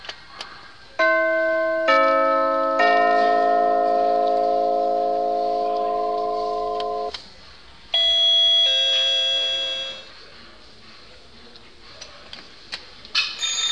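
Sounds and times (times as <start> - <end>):
door chimes tested at the DIY store: 1.0 - 7.1, 8.0 - 10.0.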